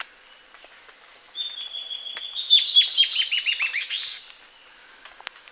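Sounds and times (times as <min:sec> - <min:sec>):
bird giving a bright trilled series of quick descending notes: 0:01.5 - 0:04.2.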